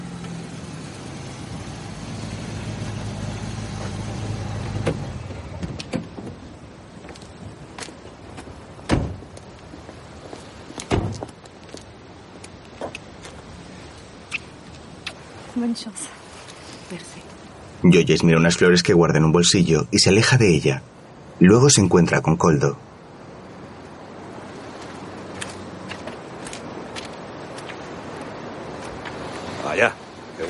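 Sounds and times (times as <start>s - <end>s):
car engine running as it pulls up to a sidewalk: 0.0s - 5.8s
car door thuds as people get out: 4.7s - 6.4s, 8.9s - 9.3s, 10.9s - 11.3s
speech: 15.6s - 16.2s, 16.9s - 17.2s, 17.8s - 22.9s.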